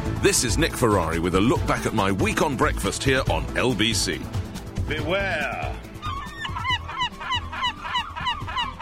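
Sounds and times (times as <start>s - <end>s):
speech: 0.2s - 5.8s
seagulls squawking: 5.8s - 8.8s.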